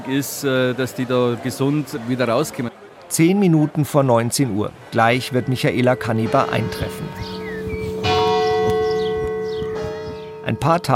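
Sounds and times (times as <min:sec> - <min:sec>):
speech: 0:00.1 - 0:07.4, 0:10.5 - 0:10.9
village church bells ringing in a hilly Upper Bavarian village: 0:05.0 - 0:10.9.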